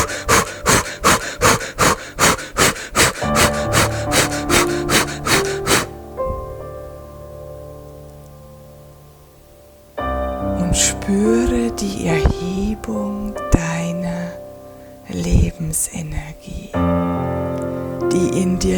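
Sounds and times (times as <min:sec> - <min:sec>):
person breathing in and out rapidly with arms raised: 0:00.0 - 0:06.6
soft tonal music: 0:00.0 - 0:18.7.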